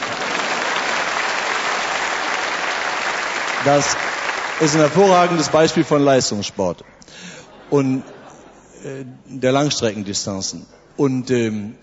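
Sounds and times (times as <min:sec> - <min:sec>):
audience applause: 0:00.0 - 0:05.9
speech: 0:03.6 - 0:08.1, 0:08.8 - 0:11.8.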